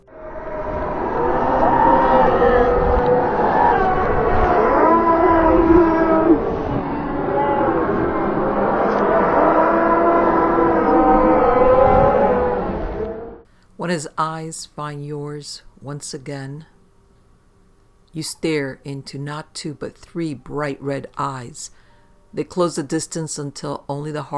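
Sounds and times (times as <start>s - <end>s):
dog's deadly ear-splitting howl: 0.0s - 13.4s
speech: 14.0s - 16.8s, 18.1s - 24.3s.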